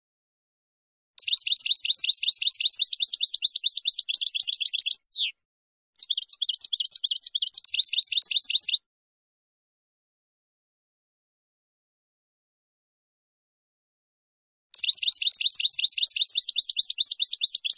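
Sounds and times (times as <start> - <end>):
finch song: 1.2 - 5.4, 6.0 - 8.8, 14.8 - 17.7.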